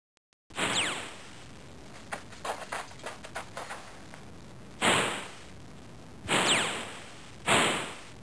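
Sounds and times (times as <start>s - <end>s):
gunshots in a cowboy gun fight duel: 0.5s - 1.3s, 4.8s - 5.5s, 6.3s - 8.2s.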